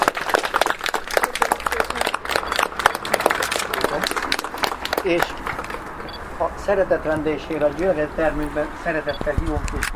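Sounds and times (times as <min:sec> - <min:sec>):
audience applause: 0:00.0 - 0:05.5
speech: 0:05.0 - 0:05.4, 0:06.4 - 0:09.9.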